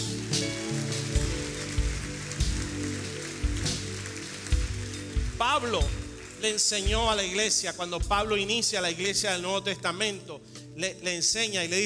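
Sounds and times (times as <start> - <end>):
audience applause: 0.0 - 7.4
speech: 5.5 - 11.8.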